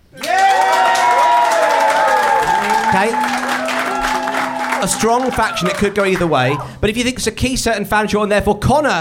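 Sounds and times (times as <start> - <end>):
live studio audience applause: 0.1 - 6.7
speech: 3.0 - 3.4, 4.8 - 8.9.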